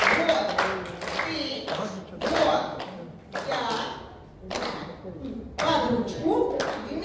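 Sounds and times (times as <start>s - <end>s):
children clapping hands: 0.0s - 3.8s, 4.5s - 4.8s, 6.6s - 6.9s.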